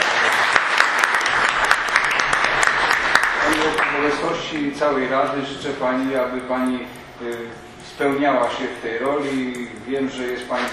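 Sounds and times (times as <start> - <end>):
warm applause: 0.0 - 4.2
speech: 3.6 - 10.7.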